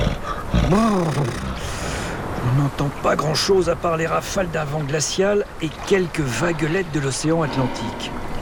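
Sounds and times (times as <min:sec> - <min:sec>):
heavy cavernous breathing of large animal: 0:00.2 - 0:01.0, 0:01.6 - 0:02.3, 0:07.3 - 0:08.4
speech: 0:00.7 - 0:01.5, 0:02.8 - 0:08.3.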